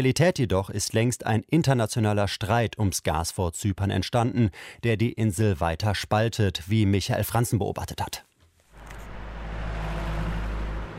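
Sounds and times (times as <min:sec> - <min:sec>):
speech: 0:00.0 - 0:08.3
heavy rush-hour car traffic in downtown Nicosia, Cyprus: 0:08.7 - 0:10.9.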